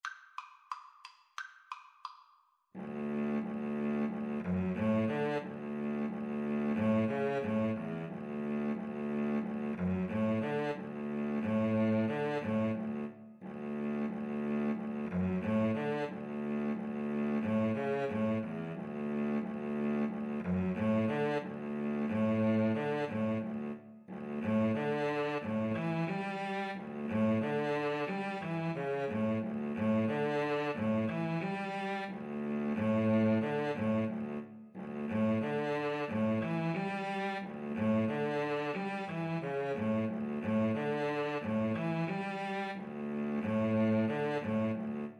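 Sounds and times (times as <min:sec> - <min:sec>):
cello: 0:02.8 - 0:45.1
viola: 0:02.8 - 0:45.1.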